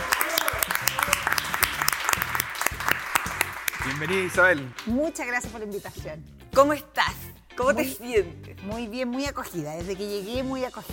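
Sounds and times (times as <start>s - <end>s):
audience applause welcoming a guest: 0.0s - 5.1s
speech: 4.0s - 10.9s.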